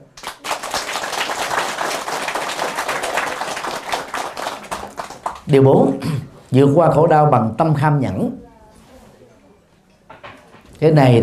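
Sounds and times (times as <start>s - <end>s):
audience applause: 0.0s - 5.5s
speech: 5.5s - 8.4s, 10.8s - 11.2s.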